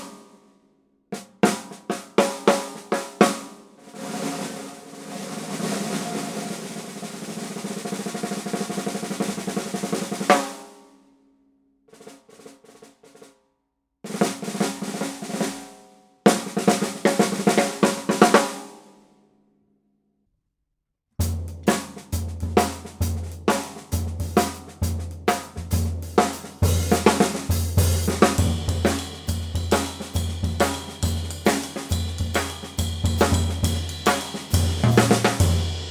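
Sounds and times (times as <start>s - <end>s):
Gretsch Solid Shell birdseye maple snare drum: 1.2s - 10.7s, 14.1s - 18.7s, 21.2s - 35.8s.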